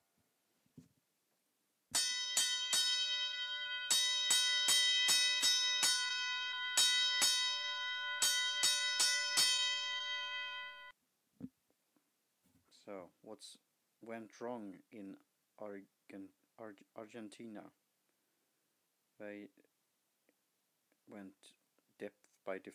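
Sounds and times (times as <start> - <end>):
fire alarm bell ringing: 2.0 - 10.9
speech: 13.4 - 17.8, 19.2 - 19.7, 21.1 - 22.7.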